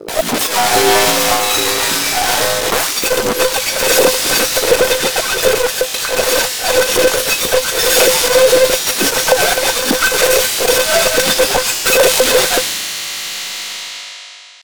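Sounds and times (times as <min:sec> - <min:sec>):
glitch noise: 0:00.0 - 0:12.6.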